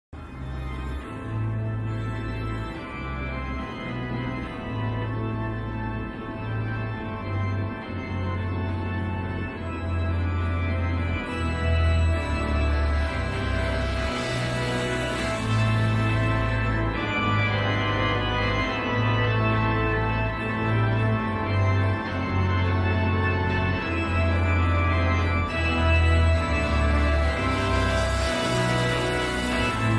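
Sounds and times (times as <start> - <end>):
organ: 0.2 - 29.9.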